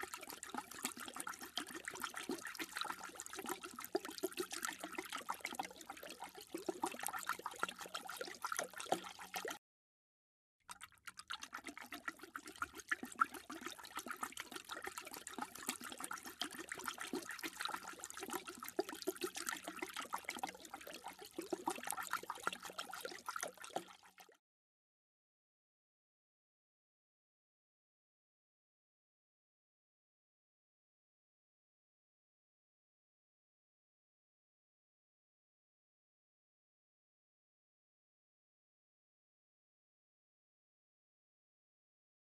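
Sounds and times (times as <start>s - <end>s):
dog drinking water: 0.0s - 9.6s, 10.7s - 24.2s.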